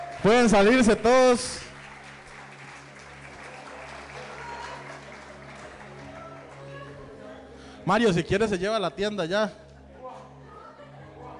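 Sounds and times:
audience applause: 0.0 - 6.9
speech: 0.2 - 1.7, 7.9 - 9.6.

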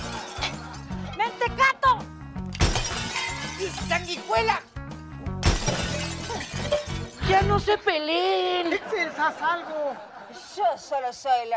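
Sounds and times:
plates being thrown and smashed: 0.0 - 0.9, 2.6 - 4.7, 5.4 - 7.5
laughter: 0.0 - 1.6, 8.3 - 11.0
speech: 3.9 - 4.7, 7.4 - 11.5.

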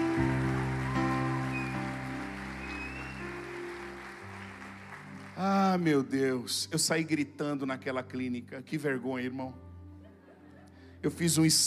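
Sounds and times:
audience applause: 0.0 - 5.8
speech: 5.4 - 9.6, 11.0 - 11.6.

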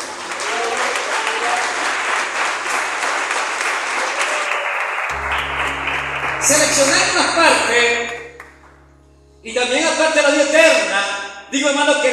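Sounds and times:
audience applause: 0.0 - 8.7
speech: 6.8 - 8.1, 9.4 - 12.1.

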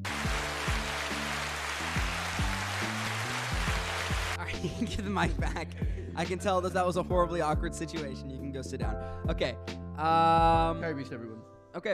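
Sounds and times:
applause: 0.0 - 4.5
speech: 4.6 - 11.9.

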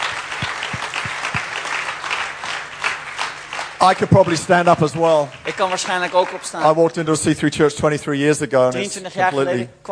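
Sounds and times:
audience applause: 0.0 - 6.9
speech: 3.8 - 9.9.

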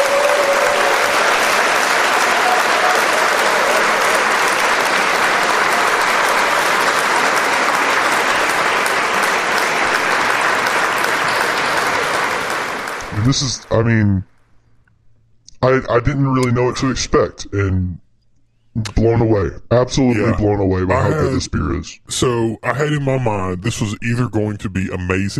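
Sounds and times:
group applause: 0.0 - 13.9, 20.1 - 21.4
laughter: 4.9 - 13.7, 20.1 - 21.5, 22.2 - 25.3
speech: 13.3 - 14.3, 15.6 - 18.0, 18.8 - 25.3.

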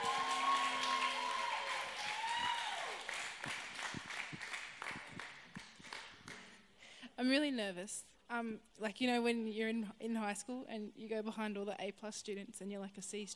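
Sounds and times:
whoops and shouts: 0.0 - 3.1
crowd applauding: 0.0 - 6.6
speech: 7.2 - 13.3.

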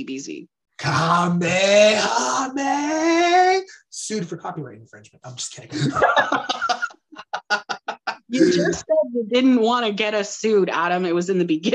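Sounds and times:
speech: 0.0 - 7.0, 8.3 - 11.7
human imitating a growl: 0.8 - 3.6, 8.3 - 8.8
laughter: 5.7 - 8.8.

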